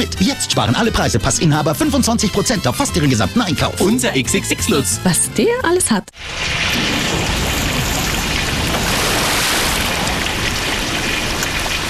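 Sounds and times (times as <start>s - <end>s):
speech: 0.0s - 7.0s
water flooding a cellar: 6.2s - 11.8s.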